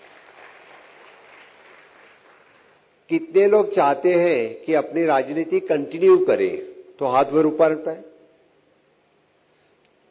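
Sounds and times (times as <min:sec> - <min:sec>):
audience applause: 0:00.0 - 0:02.8
speech: 0:03.1 - 0:08.1.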